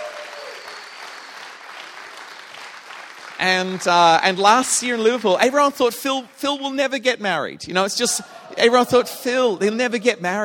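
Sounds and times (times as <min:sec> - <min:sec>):
audience applause: 0:00.0 - 0:04.3
speech: 0:03.4 - 0:10.4.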